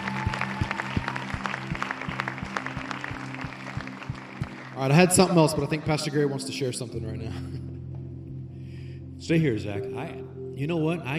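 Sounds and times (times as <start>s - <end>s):
music with a regular beat and sustained low tones: 0.0s - 4.6s
church congregation applauding to welcome new members: 0.0s - 5.7s
speech: 4.8s - 7.7s, 9.2s - 11.1s.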